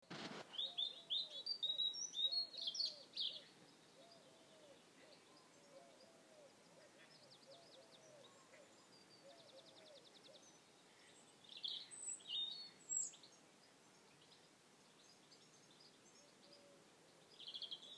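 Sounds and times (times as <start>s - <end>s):
birds singing in chorus: 0.4s - 17.9s.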